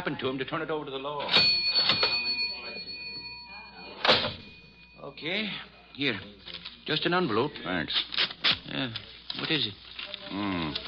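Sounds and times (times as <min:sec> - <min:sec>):
speech: 0:00.0 - 0:02.2, 0:05.0 - 0:10.8
cash register clattering open: 0:01.2 - 0:02.4, 0:04.0 - 0:04.5
thin steady ringing tone: 0:01.2 - 0:06.2.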